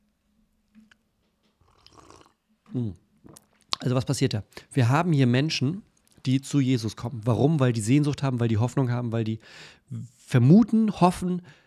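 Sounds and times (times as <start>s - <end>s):
person sipping coffee: 1.6s - 2.4s
speech: 2.7s - 3.0s, 3.8s - 11.6s.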